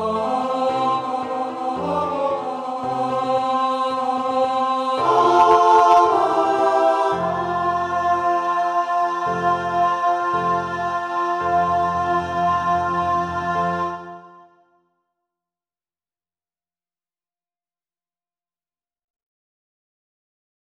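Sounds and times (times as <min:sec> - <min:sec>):
tenor singing: 0:00.0 - 0:14.5.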